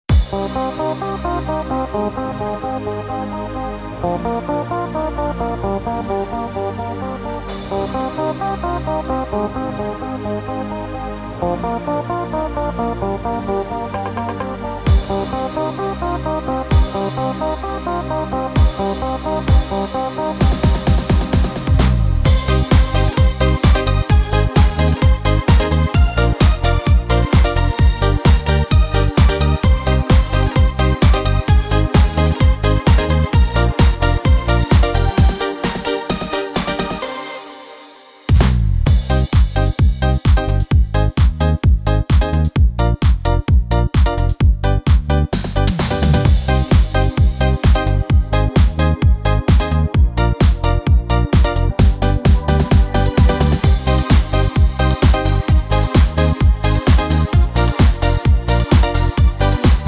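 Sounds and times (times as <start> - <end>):
disco music: 0.0 - 59.8.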